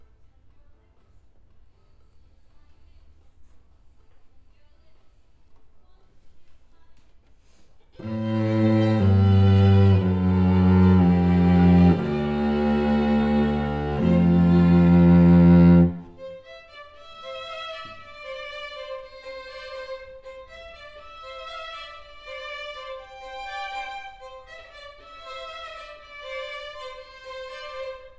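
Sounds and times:
cello: 8.0s - 28.1s.

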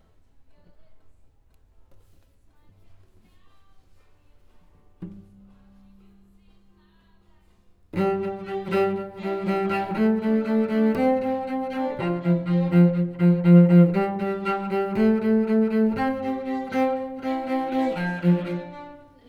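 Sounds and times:
cello: 4.5s - 6.8s, 7.9s - 19.2s.

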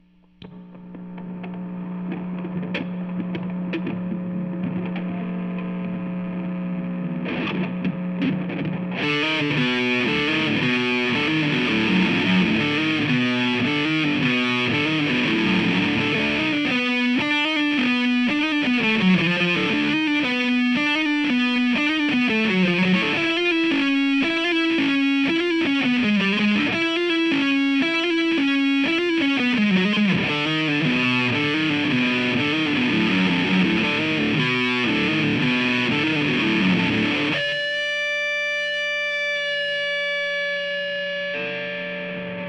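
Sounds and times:
guitar: 0.0s - 42.4s.

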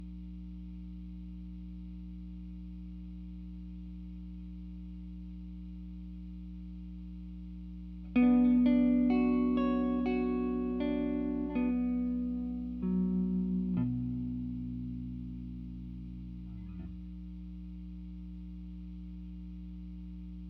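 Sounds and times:
guitar: 8.0s - 17.2s.

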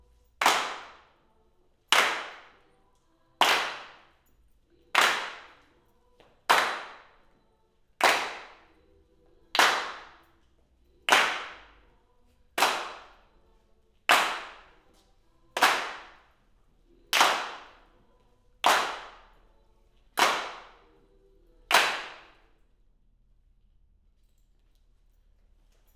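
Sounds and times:
hand claps: 0.4s - 1.2s, 1.9s - 2.7s, 3.4s - 7.3s, 8.0s - 8.8s, 9.5s - 10.4s, 11.0s - 11.9s, 12.6s - 13.2s, 14.0s - 15.0s, 15.6s - 16.4s, 17.1s - 18.0s, 18.6s - 19.4s, 20.2s - 21.0s, 21.7s - 22.6s.

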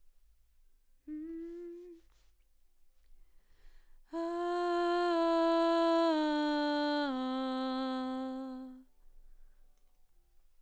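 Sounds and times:
background vocals: 4.1s - 8.8s.

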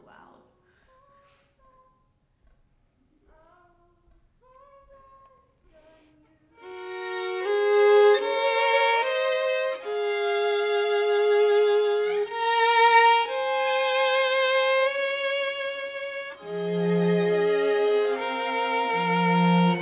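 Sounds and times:
violin: 6.5s - 19.8s.

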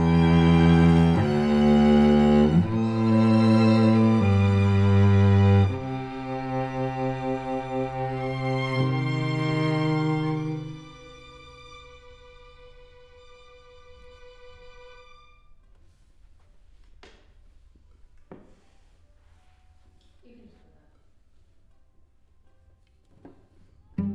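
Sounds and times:
cello: 0.0s - 16.1s, 23.2s - 24.1s.

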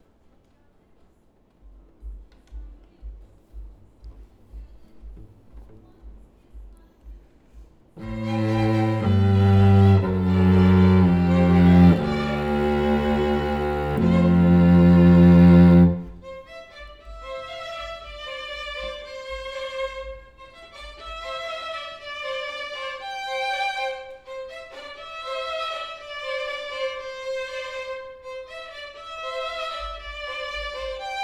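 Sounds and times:
cello: 8.0s - 31.2s.

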